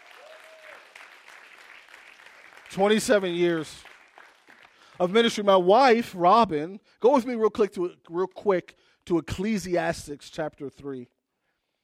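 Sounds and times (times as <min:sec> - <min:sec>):
audience applause: 0:00.0 - 0:05.0
speech: 0:02.7 - 0:03.9, 0:05.0 - 0:11.2.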